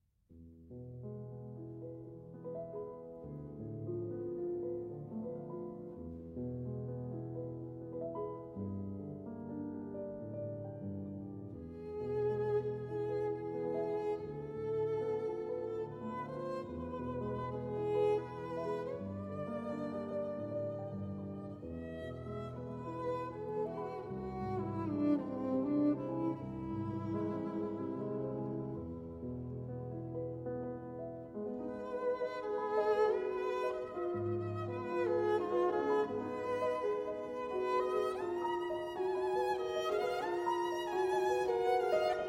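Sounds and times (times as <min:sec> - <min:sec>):
piano: 0:00.3 - 0:42.2
violin: 0:01.0 - 0:42.2.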